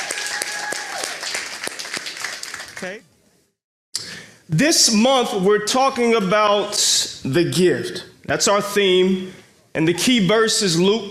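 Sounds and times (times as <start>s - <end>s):
audience applause at a church gathering: 0.0s - 3.0s
speech: 2.8s - 3.1s, 4.0s - 11.0s.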